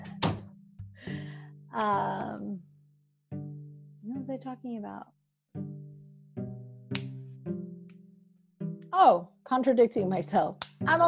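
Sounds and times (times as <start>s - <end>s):
door being shut: 0.0s - 0.5s
speech: 1.8s - 2.7s, 4.3s - 5.2s, 9.0s - 11.0s.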